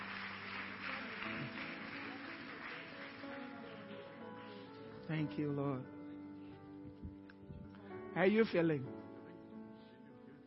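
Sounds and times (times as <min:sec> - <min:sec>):
audience clapping: 0:00.0 - 0:05.2
speech: 0:05.1 - 0:06.0, 0:08.2 - 0:09.0.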